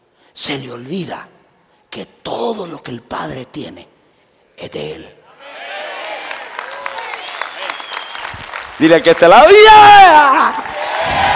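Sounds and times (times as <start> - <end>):
speech: 0.4 - 1.4, 2.0 - 3.9, 4.6 - 5.2, 8.8 - 11.3
audience applause: 5.9 - 11.3.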